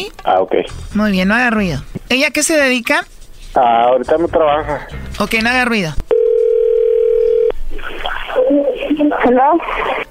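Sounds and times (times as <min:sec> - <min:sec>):
speech: 0:00.0 - 0:06.1, 0:08.9 - 0:10.0
telephone tone: 0:06.1 - 0:07.6.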